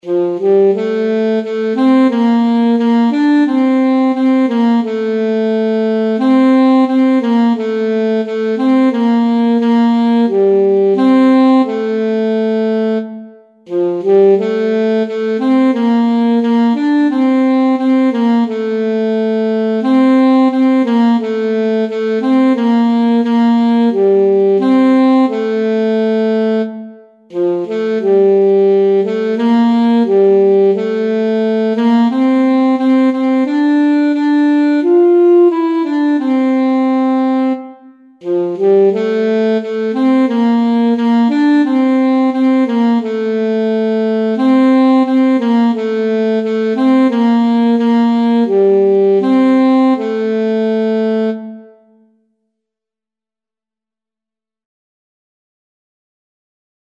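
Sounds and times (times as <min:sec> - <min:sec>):
alto saxophone: 0:00.0 - 0:52.2.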